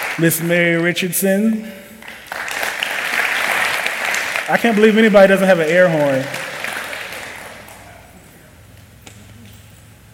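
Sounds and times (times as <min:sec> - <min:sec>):
audience applause: 0:00.0 - 0:00.5, 0:02.0 - 0:08.2
speech: 0:00.2 - 0:01.8, 0:04.5 - 0:06.4.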